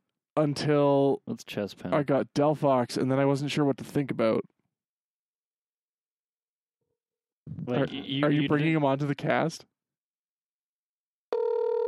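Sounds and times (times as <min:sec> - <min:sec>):
speech: 0:00.4 - 0:04.5, 0:07.7 - 0:09.7
telephone ringing during a phone call: 0:11.3 - 0:11.8.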